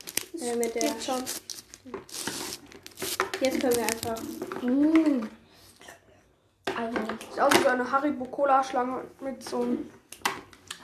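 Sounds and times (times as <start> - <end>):
crinkly plastic sweet packet wrapper rustling and tearing: 0.0 - 4.8
speech: 0.4 - 2.3, 3.4 - 5.4, 6.8 - 10.0.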